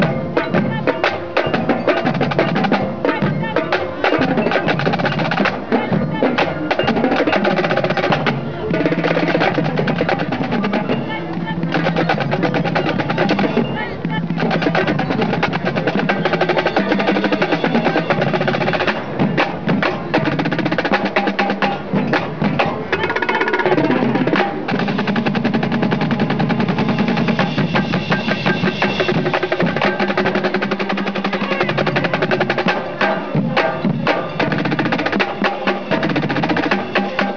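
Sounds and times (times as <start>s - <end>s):
rumba drums: 0.0s - 37.3s.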